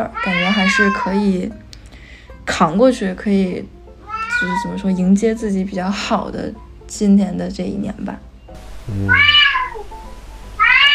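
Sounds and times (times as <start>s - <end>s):
speech: 0.0s - 1.6s, 2.5s - 3.8s, 4.4s - 8.3s, 8.9s - 9.4s
cat meowing: 0.1s - 1.2s, 4.0s - 4.8s, 8.9s - 9.8s, 10.6s - 10.9s.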